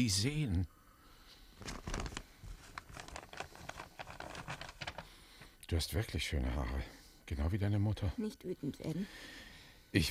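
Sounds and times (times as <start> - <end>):
speech: 0.0 - 0.8, 5.7 - 10.0
envelope paper crinkling: 1.5 - 5.5.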